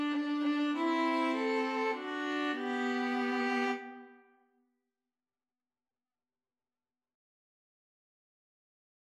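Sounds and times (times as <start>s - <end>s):
violin in violin viola duet: 0.0s - 4.4s.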